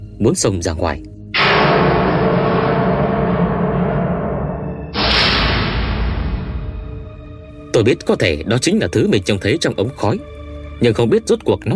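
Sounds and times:
speech: 0.2 - 1.2, 7.8 - 11.7
loud bang from a cremation furnace: 1.4 - 7.7.

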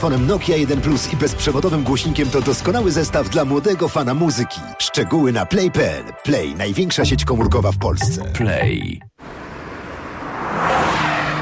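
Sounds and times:
speech: 0.0 - 9.1
Honda HR-V 1.5 Turbo engine and road roar: 9.1 - 11.4
Honda HR-V tires squealing: 9.6 - 11.4.

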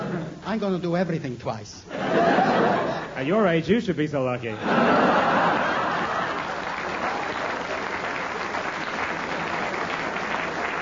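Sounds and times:
laughter: 0.0 - 0.4, 1.9 - 3.4, 4.5 - 7.7
speech: 0.5 - 5.6
audience applause: 4.8 - 10.8.

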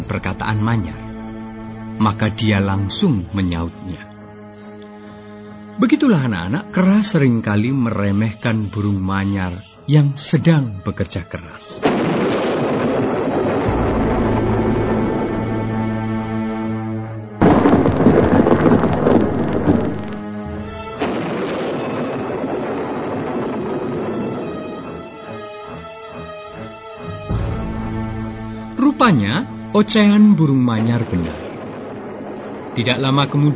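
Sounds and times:
speech: 0.1 - 1.0, 2.0 - 4.1, 5.8 - 13.8, 29.1 - 31.4, 32.8 - 33.5
rain: 11.8 - 16.4, 17.4 - 33.5
loud thunderclap: 11.8 - 16.5, 17.4 - 25.3, 30.6 - 33.5.

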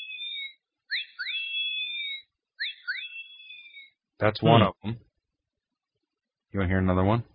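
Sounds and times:
electronic survival device catcall whistle: 0.0 - 4.0
speech: 4.2 - 5.1, 6.5 - 7.3.

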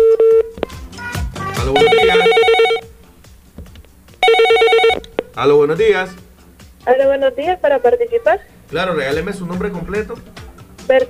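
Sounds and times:
telephone ringing for a caller to a radio call-in show: 1.7 - 2.9, 4.2 - 5.0
speech: 5.4 - 6.2, 6.8 - 10.3, 10.9 - 11.0.

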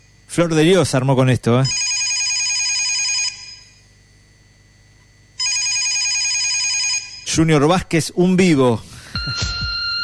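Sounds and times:
speech: 0.4 - 1.8, 7.4 - 9.5
telephone bell ringing with rapid metallic trilling: 1.7 - 3.8, 5.4 - 7.4, 9.1 - 10.0.

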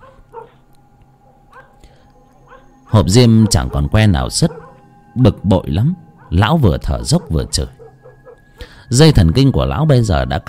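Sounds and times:
stray dogs barking from across a field: 0.0 - 5.2, 6.0 - 8.7
speech: 2.9 - 4.6, 5.2 - 7.8, 8.9 - 10.4.

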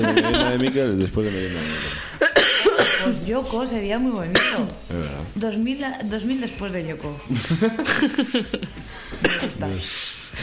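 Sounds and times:
laughter: 0.0 - 1.7, 7.3 - 8.9
speech: 0.0 - 2.1, 3.0 - 10.2
person coughing: 2.2 - 3.2, 4.3 - 4.7, 9.2 - 9.7.

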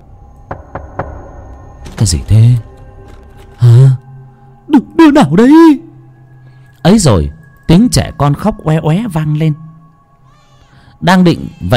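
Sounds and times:
steady knocking on a door: 0.5 - 1.5
speech: 2.0 - 2.7, 4.8 - 5.9, 6.8 - 9.6, 11.0 - 11.7.

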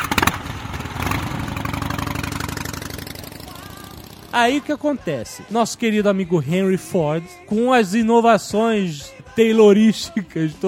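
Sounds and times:
Harley-Davidson motorcycle engine starting and idling: 0.0 - 7.3
speech: 4.4 - 10.6.

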